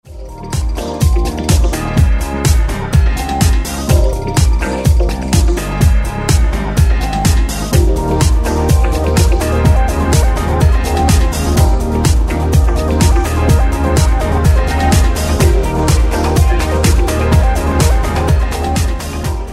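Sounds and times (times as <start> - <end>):
modern pop music: 0.0 - 19.5.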